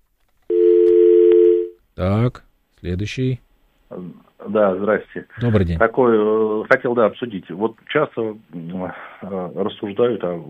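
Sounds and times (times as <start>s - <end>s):
telephone line tone of an incoming call: 0.5s - 1.8s
speech: 2.0s - 10.4s.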